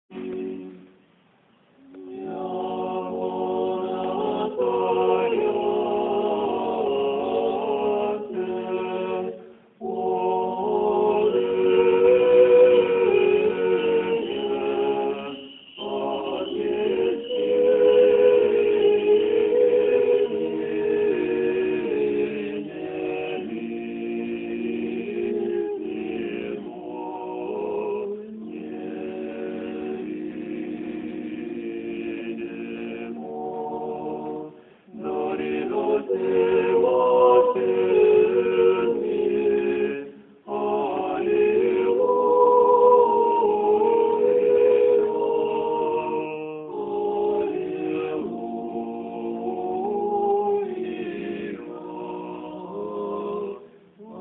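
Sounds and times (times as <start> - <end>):
choir singing: 0.1 - 1.0, 1.8 - 54.1.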